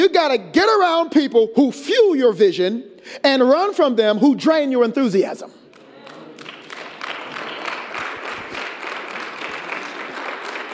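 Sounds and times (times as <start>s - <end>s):
speech: 0.0s - 5.6s
audience clapping: 5.7s - 10.7s.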